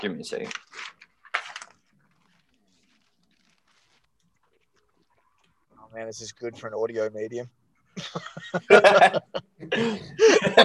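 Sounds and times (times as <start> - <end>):
speech: 0.0 - 1.0, 5.9 - 10.6
paper being scrunched up: 0.4 - 5.0
laughter: 8.0 - 10.6.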